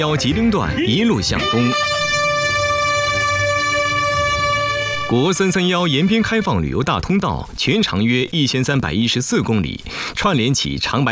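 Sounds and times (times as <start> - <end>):
speech: 0.0 - 2.0, 5.1 - 11.0
vehicle horn blast: 1.4 - 6.5.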